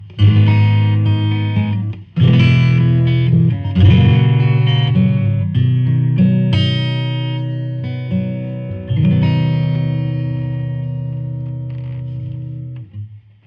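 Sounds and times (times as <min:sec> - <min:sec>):
cabinet stuffed bass: 0:00.0 - 0:13.4.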